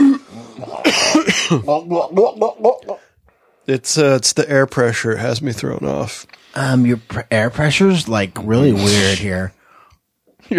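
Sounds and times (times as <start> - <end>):
stout drinker in a taproom coughing after a sip went down the wrong pipe: 0.0 - 3.0
speech: 1.4 - 3.0, 3.7 - 9.6.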